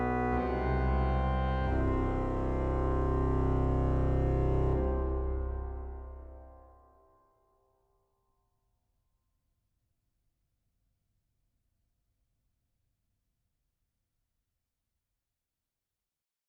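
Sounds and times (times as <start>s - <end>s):
fanfara brass band playing: 0.0s - 6.4s.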